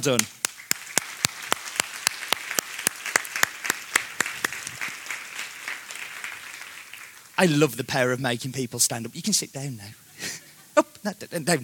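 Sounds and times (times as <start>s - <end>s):
speech: 0.0s - 0.4s, 7.4s - 10.1s, 10.8s - 11.6s
audience applause: 0.1s - 7.6s.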